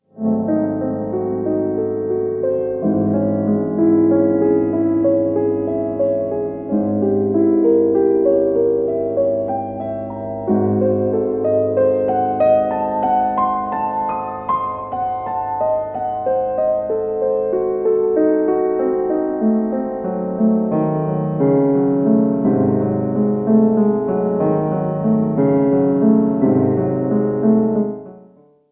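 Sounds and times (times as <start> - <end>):
slow piano sonata movement in C sharp minor: 0.0 - 28.7.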